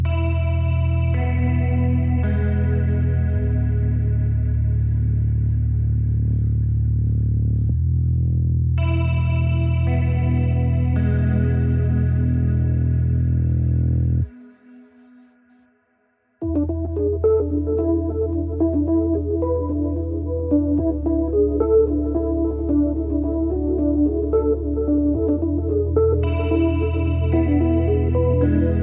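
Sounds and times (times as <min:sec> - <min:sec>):
underscore music: 0:00.1 - 0:15.6, 0:16.4 - 0:28.8.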